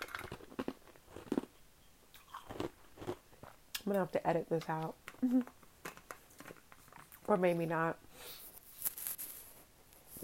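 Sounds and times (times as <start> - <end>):
crunchy chewing of ice: 0.0 - 1.5, 2.1 - 3.6
speech: 3.9 - 5.6, 7.3 - 8.4.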